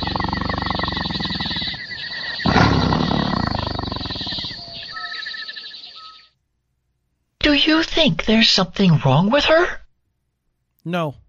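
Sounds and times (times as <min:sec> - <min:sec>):
tiger mother moaning softly to her cubs: 0:00.0 - 0:05.4
speech: 0:07.6 - 0:09.8, 0:10.8 - 0:11.2.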